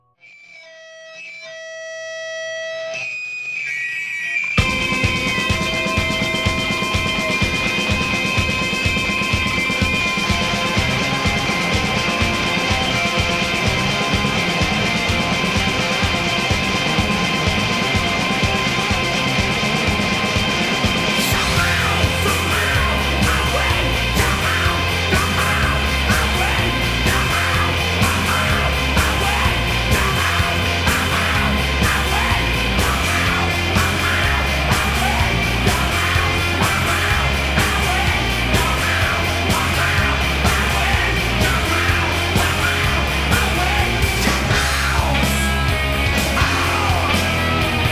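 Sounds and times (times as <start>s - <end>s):
rock music: 0.8s - 47.9s.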